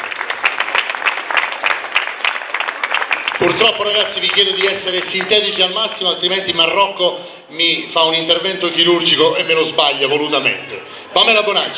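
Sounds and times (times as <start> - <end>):
audience applause: 0.0 - 6.2
speech: 3.4 - 11.7.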